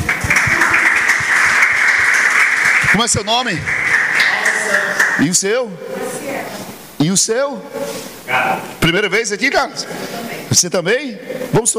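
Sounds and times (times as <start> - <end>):
audience applause: 0.0 - 5.4
speech: 3.0 - 3.8, 4.6 - 11.7.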